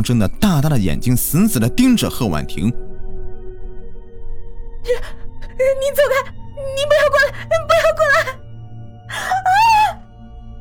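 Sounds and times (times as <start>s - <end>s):
speech: 0.0s - 2.9s, 4.8s - 7.0s
woman's short scream on waking from a nightmare: 4.9s - 8.4s, 9.1s - 10.0s.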